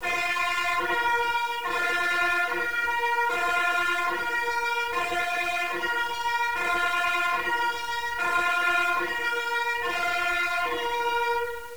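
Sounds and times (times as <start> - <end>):
siren: 0.0 - 11.7.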